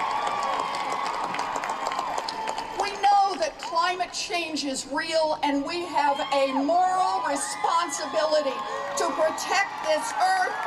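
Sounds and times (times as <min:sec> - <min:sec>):
large rally crowd cheering and clapping: 0:00.0 - 0:03.6, 0:06.1 - 0:10.6
speech: 0:04.2 - 0:10.6.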